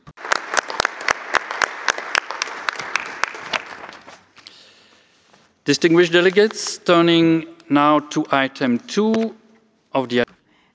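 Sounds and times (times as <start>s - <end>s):
audience applause: 0.0s - 4.3s
speech: 5.6s - 9.4s, 10.0s - 10.2s.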